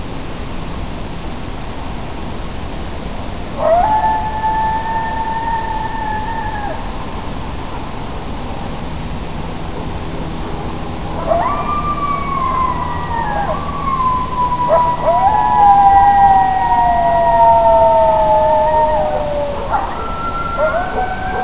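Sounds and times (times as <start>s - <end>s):
coyotes howling: 3.6s - 8.0s, 9.8s - 21.4s.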